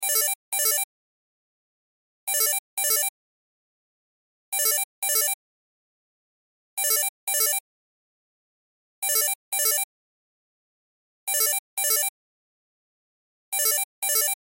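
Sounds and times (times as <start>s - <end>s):
cell phone ringtone: 0.0s - 0.9s, 2.3s - 3.1s, 4.6s - 5.4s, 6.8s - 7.6s, 9.0s - 9.9s, 11.3s - 12.1s, 13.6s - 14.4s.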